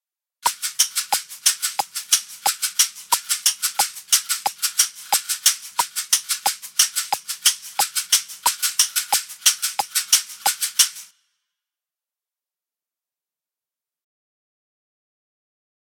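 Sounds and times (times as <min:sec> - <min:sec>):
two different caxixi shakers: 0:00.4 - 0:11.1.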